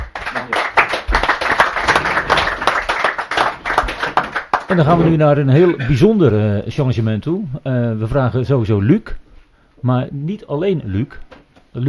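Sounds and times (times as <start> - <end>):
audience applause: 0.0 - 5.1
speech: 4.7 - 9.2, 9.8 - 11.8.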